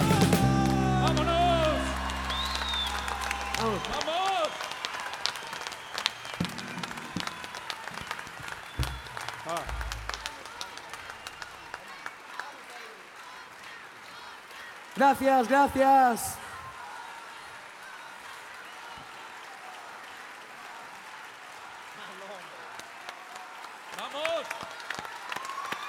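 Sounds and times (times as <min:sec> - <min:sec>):
held sung chord: 0:00.0 - 0:03.6
audience applause: 0:00.3 - 0:25.8
speech: 0:15.0 - 0:16.4.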